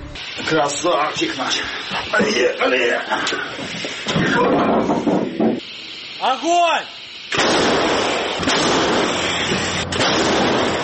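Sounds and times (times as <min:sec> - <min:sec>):
wavering tonal whine: 0:00.0 - 0:00.5
speech: 0:00.5 - 0:05.2, 0:06.2 - 0:07.8
M109 self-propelled howitzer firing: 0:07.3 - 0:10.8.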